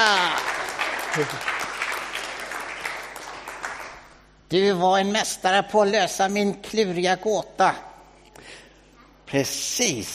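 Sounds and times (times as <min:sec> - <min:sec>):
small group clapping: 0:00.0 - 0:04.3
speech: 0:01.2 - 0:01.5, 0:04.5 - 0:07.9, 0:09.3 - 0:10.1.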